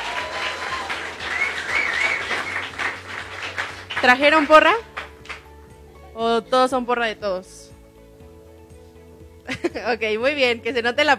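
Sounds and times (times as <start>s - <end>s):
audience applause: 0.0s - 5.4s
speech: 4.0s - 4.9s, 6.2s - 7.6s, 9.7s - 11.1s.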